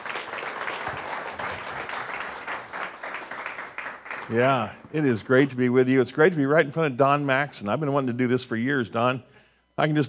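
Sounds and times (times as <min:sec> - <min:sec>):
audience applause: 0:00.0 - 0:04.9
speech: 0:04.3 - 0:10.0.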